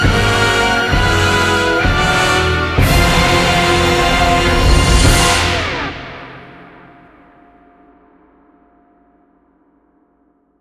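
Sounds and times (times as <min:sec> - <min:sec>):
victory jingle in 4-4 time: 0:00.1 - 0:07.0.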